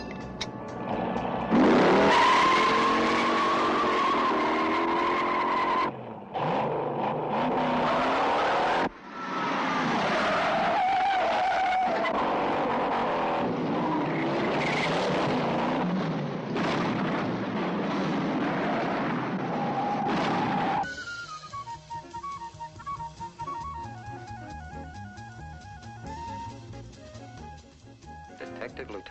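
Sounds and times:
car driving off revving hard: 0:00.6 - 0:20.8
car tires skidding and squealing: 0:00.8 - 0:16.1, 0:18.4 - 0:23.7.

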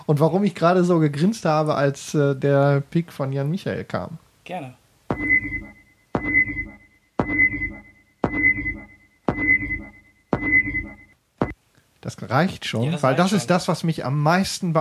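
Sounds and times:
speech: 0:00.1 - 0:05.6, 0:12.0 - 0:14.8
motion tracker beeping sound effect from film: 0:05.1 - 0:11.6.

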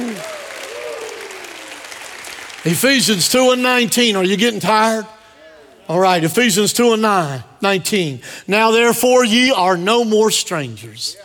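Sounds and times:
audience applause and hand clapping: 0:00.0 - 0:03.3
speech: 0:02.6 - 0:05.2, 0:05.9 - 0:11.2.

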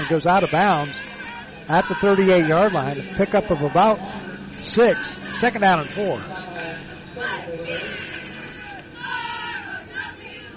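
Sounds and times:
Northridge cheerleaders chanting and shouting at a football game: 0:00.0 - 0:10.5
crowd murmur at a football game: 0:00.0 - 0:10.5
speech: 0:00.1 - 0:01.1, 0:01.7 - 0:06.6.

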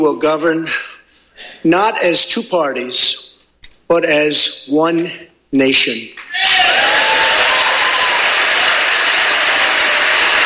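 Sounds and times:
speech: 0:00.0 - 0:00.9, 0:01.6 - 0:03.3, 0:03.9 - 0:06.5
cheering in chamber: 0:06.3 - 0:10.4
applause in chamber: 0:06.8 - 0:10.4.

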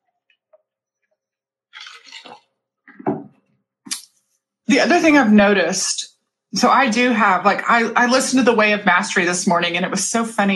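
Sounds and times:
person slurping a drink: 0:01.8 - 0:02.5
speech: 0:04.7 - 0:10.5.

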